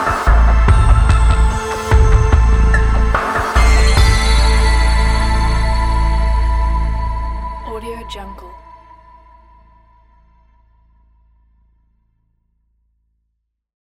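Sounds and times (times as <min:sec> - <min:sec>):
80s suspenseful TV theme music: 0:00.0 - 0:08.8.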